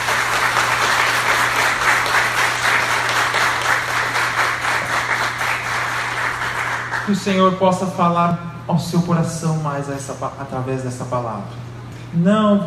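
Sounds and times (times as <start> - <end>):
audience applause: 0.0 - 7.2
speech: 7.1 - 12.6.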